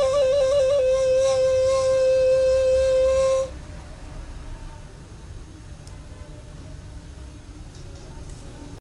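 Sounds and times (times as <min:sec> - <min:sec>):
instrumental ney music: 0:00.0 - 0:03.6.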